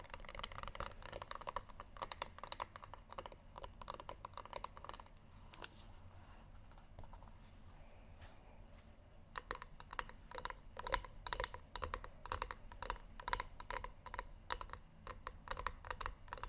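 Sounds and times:
rapid fingertip tapping: 0.0s - 5.7s, 9.3s - 16.4s
low steady hum: 0.0s - 16.4s.

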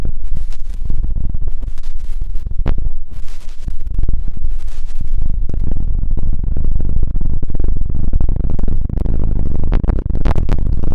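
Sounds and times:
deep ear cleaning scratching and rustling: 0.0s - 5.6s
bright crackling bursts: 0.0s - 10.9s
heavy low rumble: 0.0s - 10.9s.

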